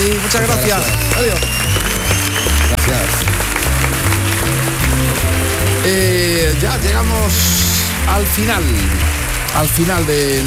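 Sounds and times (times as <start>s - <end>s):
loud applause: 0.0s - 10.4s
speech: 0.3s - 3.6s, 5.2s - 10.4s.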